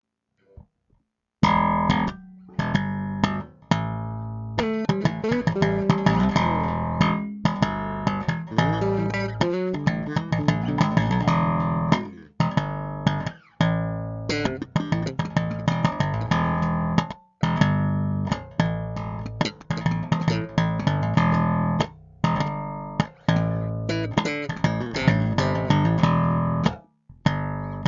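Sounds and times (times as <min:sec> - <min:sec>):
improvised music: 0:01.4 - 0:27.8.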